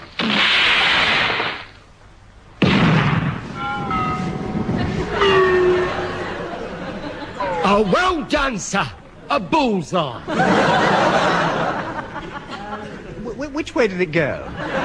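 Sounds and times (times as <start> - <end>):
depth charges fired from a ship: 0.0 - 1.9, 2.6 - 7.4
roaring rumble: 2.6 - 7.6
laughter: 4.6 - 8.4, 10.0 - 14.8
speech: 7.7 - 11.2, 13.6 - 14.8.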